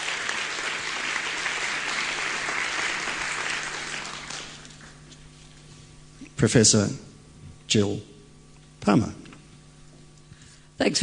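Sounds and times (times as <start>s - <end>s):
audience applause welcoming a speaker to the lectern at the inaugural Paul Mees public debate: 0.0s - 5.0s
speech: 6.4s - 7.1s, 7.7s - 8.1s, 8.8s - 9.2s, 10.8s - 11.0s.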